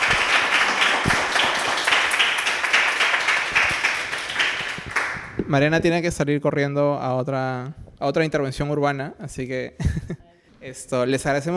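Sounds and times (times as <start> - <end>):
audience applause: 0.0 - 5.5
speech: 5.5 - 11.5
laughter: 9.8 - 10.2.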